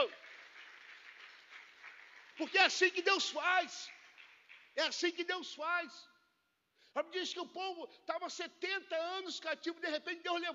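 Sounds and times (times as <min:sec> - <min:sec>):
audience applauding: 0:00.0 - 0:05.0
speech: 0:02.4 - 0:04.0, 0:04.8 - 0:06.1, 0:06.9 - 0:10.5.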